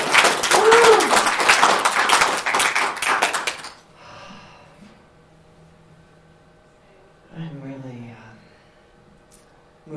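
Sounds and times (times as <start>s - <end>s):
audience applause: 0.0s - 3.8s.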